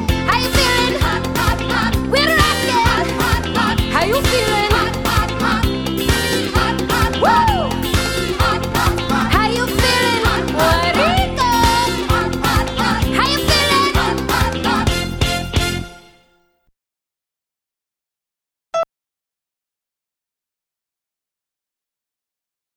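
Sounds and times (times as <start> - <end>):
cover band playing disco: 0.0 - 15.9.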